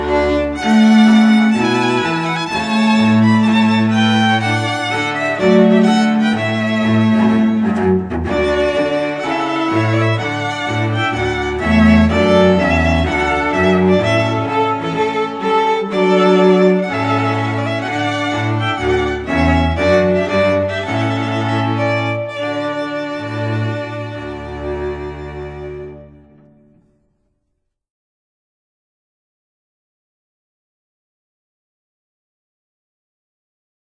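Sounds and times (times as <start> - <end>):
trumpet piece: 0.0 - 27.0.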